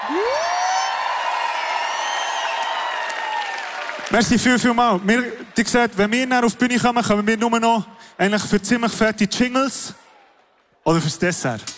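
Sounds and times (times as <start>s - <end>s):
audience applause: 0.0s - 6.8s
crowd cheering: 0.0s - 7.2s
speech: 4.1s - 10.0s, 10.8s - 11.7s.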